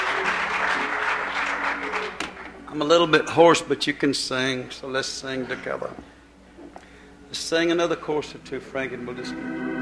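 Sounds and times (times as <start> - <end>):
audience clapping hands: 0.0 - 3.1
speech: 2.7 - 6.2, 7.3 - 9.7.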